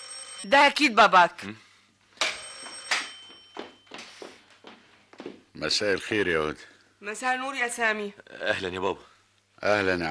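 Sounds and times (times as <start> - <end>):
telephone bell ringing: 0.0 - 0.6, 2.2 - 4.0
speech: 0.4 - 1.6, 5.6 - 10.0.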